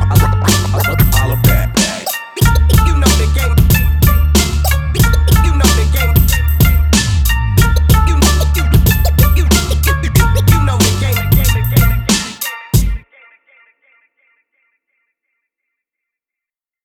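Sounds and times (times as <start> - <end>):
ethnic game music: 0.0 - 13.0.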